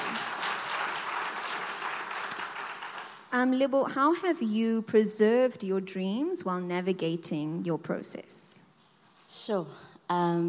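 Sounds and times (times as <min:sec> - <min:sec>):
audience applause: 0:00.0 - 0:03.3
speech: 0:03.3 - 0:08.5, 0:09.3 - 0:10.4.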